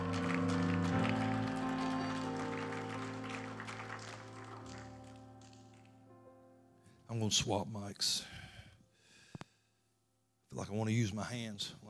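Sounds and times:
audience hand clapping: 0:00.0 - 0:06.0
sustained keyboard chords: 0:00.0 - 0:06.6
speech: 0:07.1 - 0:08.4, 0:10.6 - 0:11.8.

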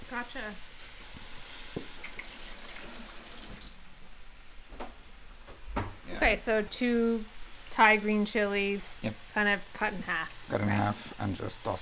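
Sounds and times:
onions frying in a pan until translucent: 0:00.0 - 0:03.4, 0:06.1 - 0:11.8
speech: 0:00.1 - 0:00.8, 0:06.2 - 0:11.8.

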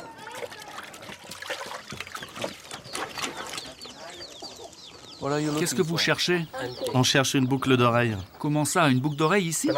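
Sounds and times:
running water while washing dishes: 0:00.0 - 0:03.8
birds chirping: 0:00.0 - 0:09.7
speech: 0:05.2 - 0:09.7.

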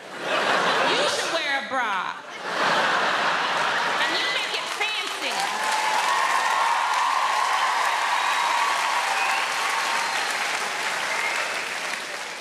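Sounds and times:
laughter: 0:00.0 - 0:06.0
women in audience clapping and cheering: 0:03.8 - 0:12.3.

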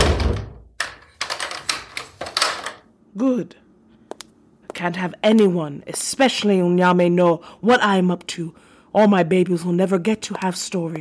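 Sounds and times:
heavy door thudding shut with a low boom: 0:00.0 - 0:00.7
door lock clicking and rattling as it is locked: 0:00.0 - 0:02.9
speech: 0:03.2 - 0:03.6, 0:04.8 - 0:10.9.

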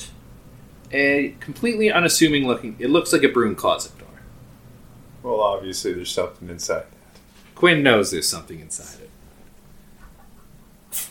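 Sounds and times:
low hum: 0:00.0 - 0:11.0
speech: 0:00.9 - 0:04.1, 0:05.2 - 0:07.0, 0:07.6 - 0:09.2
sneeze: 0:10.9 - 0:11.0.

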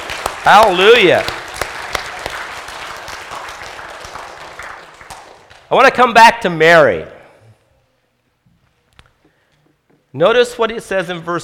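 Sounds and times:
audience clapping: 0:00.0 - 0:06.0
speech: 0:00.4 - 0:01.4, 0:05.7 - 0:07.2, 0:10.1 - 0:11.4.

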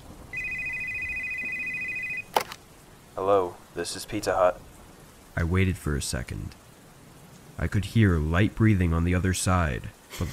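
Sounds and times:
telephone ringing: 0:00.3 - 0:02.3
speech: 0:03.2 - 0:04.7, 0:05.4 - 0:06.6, 0:07.6 - 0:10.3.

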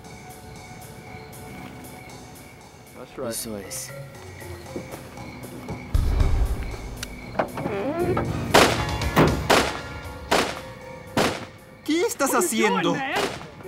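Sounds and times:
speech: 0:03.0 - 0:05.1, 0:12.1 - 0:13.4
short rising squeal: 0:04.4 - 0:08.5
repeated gunshots: 0:08.5 - 0:11.5, 0:13.2 - 0:13.6.

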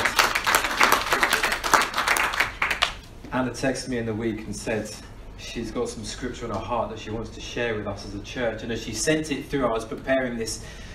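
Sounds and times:
crowd applause: 0:00.0 - 0:03.0
speech: 0:03.4 - 0:10.9.

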